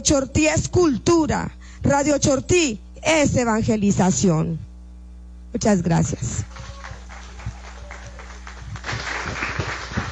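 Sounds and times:
speech: 0.0 - 4.7, 5.5 - 6.5
audience applause: 6.4 - 10.0.

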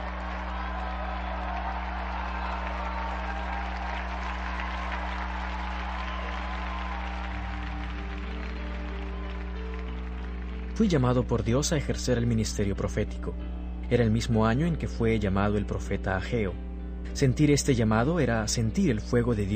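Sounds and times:
audience applause: 0.0 - 11.8
speech: 10.8 - 19.5.

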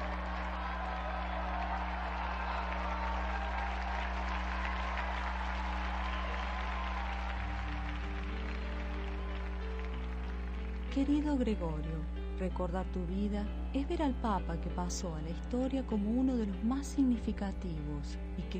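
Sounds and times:
audience applause: 0.0 - 11.3
speech: 11.0 - 18.5.

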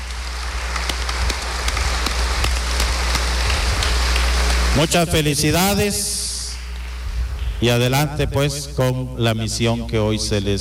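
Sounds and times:
audience applause: 0.0 - 4.9
speech: 4.8 - 6.2, 7.6 - 10.5.

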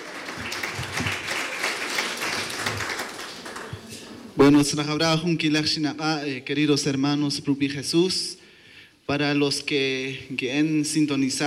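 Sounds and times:
loud applause: 0.0 - 4.4
speech: 4.4 - 8.4, 9.1 - 11.4.

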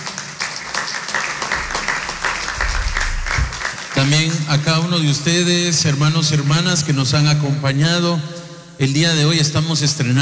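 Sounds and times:
audience applause: 0.0 - 4.7
speech: 4.0 - 10.2.

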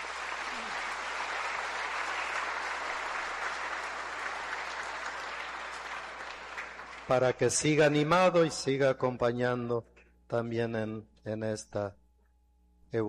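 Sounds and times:
audience applauding in church: 0.0 - 8.0
speech: 7.1 - 12.0.

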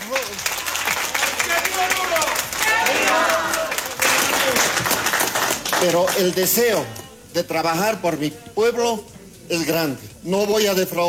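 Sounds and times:
audience applause at a swearing-in ceremony in Oruro: 0.0 - 6.6
crowd shouts and voices: 0.5 - 4.6
speech: 5.8 - 11.0.

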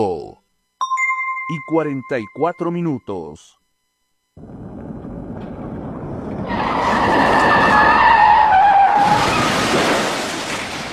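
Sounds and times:
speech: 1.5 - 3.6, 4.4 - 4.6
car tires skidding: 6.3 - 9.8.

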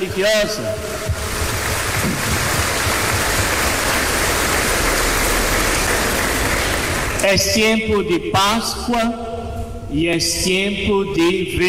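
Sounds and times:
speech: 0.0 - 1.4, 7.2 - 9.3, 9.9 - 11.6
crowd applause: 0.8 - 7.2.

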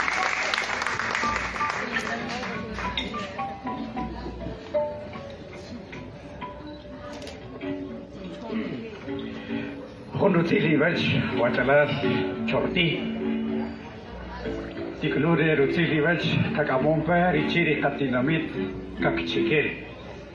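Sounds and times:
audience clapping: 0.0 - 3.3
crowd voices: 0.0 - 20.3
speech: 10.2 - 13.3, 15.0 - 20.3.

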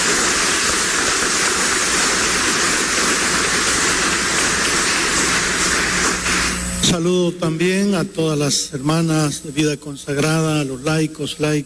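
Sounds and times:
crowd applause: 0.0 - 6.6
speech: 6.9 - 11.6.

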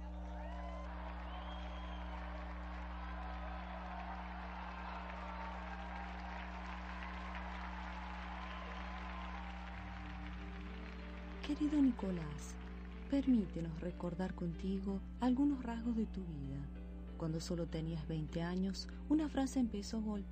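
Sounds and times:
audience applause: 0.0 - 13.4
speech: 11.5 - 20.3.

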